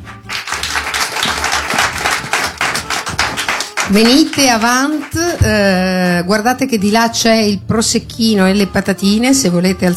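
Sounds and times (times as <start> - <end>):
audience applause at a live radio event: 0.0 - 5.2
speech: 3.9 - 9.9.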